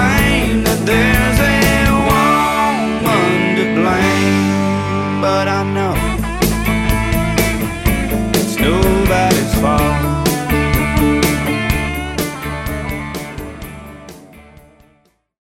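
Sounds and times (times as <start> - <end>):
solo electric guitar: 0.0 - 14.8.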